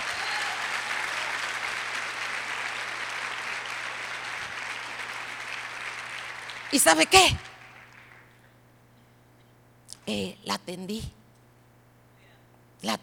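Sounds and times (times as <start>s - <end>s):
audience applause: 0.0s - 8.3s
speech: 6.7s - 7.5s, 10.1s - 11.2s, 12.8s - 13.0s.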